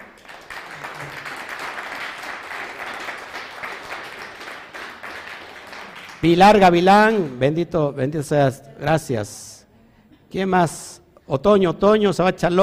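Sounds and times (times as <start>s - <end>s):
applause: 0.0s - 7.6s
speech: 6.2s - 9.4s, 10.3s - 12.6s.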